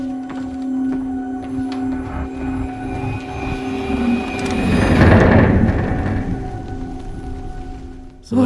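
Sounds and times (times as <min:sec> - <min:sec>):
wooden ship creaking: 0:00.0 - 0:08.2
whoosh transition: 0:02.0 - 0:08.1.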